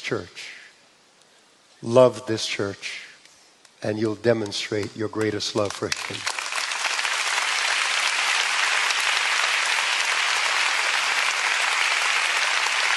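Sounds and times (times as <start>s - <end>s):
speech: 0.1s - 0.6s, 1.8s - 3.1s, 3.8s - 6.4s
audience applause: 5.8s - 12.9s.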